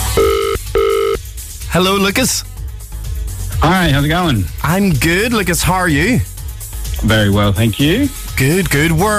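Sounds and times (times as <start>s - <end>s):
telephone ringback tone: 0.1s - 1.2s
speech: 1.7s - 2.5s, 3.6s - 6.3s, 7.0s - 9.1s.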